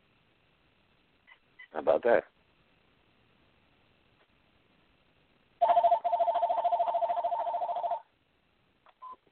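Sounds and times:
speech: 1.7s - 2.4s
telephone ringing: 5.6s - 8.1s.

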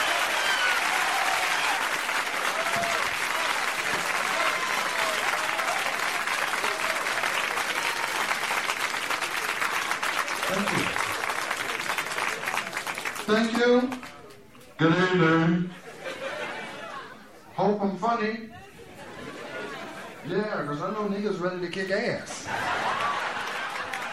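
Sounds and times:
cheers and whoops: 0.0s - 8.6s
large crowd applause: 0.0s - 14.2s, 22.4s - 24.1s
laughter: 10.4s - 11.3s, 15.7s - 17.5s, 18.6s - 20.3s, 22.3s - 24.1s
speech: 13.3s - 14.0s, 14.8s - 15.8s, 17.8s - 18.6s, 20.3s - 22.6s.

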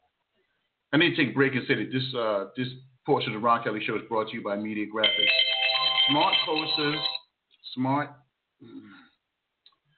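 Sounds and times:
speech: 0.9s - 5.5s, 6.1s - 7.1s, 7.7s - 9.0s
phone ringtone: 5.0s - 7.2s.

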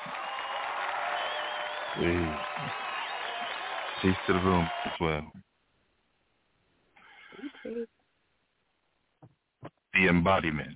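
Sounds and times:
audience applause at a poetry show: 0.0s - 5.2s
speech: 2.0s - 2.9s, 4.0s - 5.5s, 7.7s - 8.0s, 10.0s - 10.7s.

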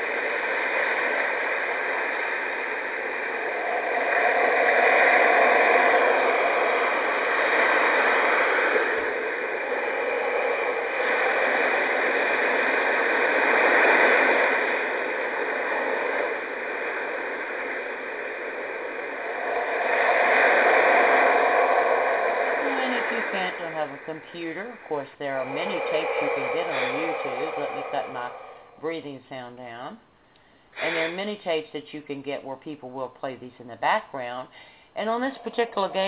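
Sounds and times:
ocean surf: 0.0s - 28.8s
speech: 24.3s - 30.1s, 30.8s - 36.0s.

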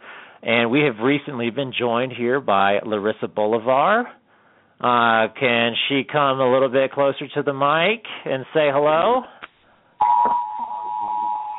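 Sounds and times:
speech: 0.4s - 4.2s, 4.8s - 9.4s
cell phone alert tone: 10.0s - 11.5s.

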